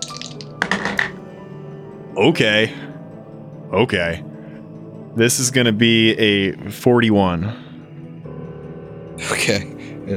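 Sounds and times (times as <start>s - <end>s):
Tracana dice rolling: 0.0s - 1.2s
speech: 2.2s - 2.9s, 3.7s - 4.3s, 5.2s - 7.6s, 9.2s - 10.1s.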